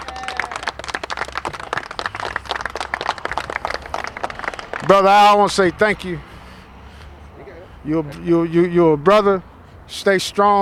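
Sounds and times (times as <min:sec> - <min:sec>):
audience clapping: 0:00.0 - 0:05.2
speech: 0:04.9 - 0:06.3, 0:07.8 - 0:10.6.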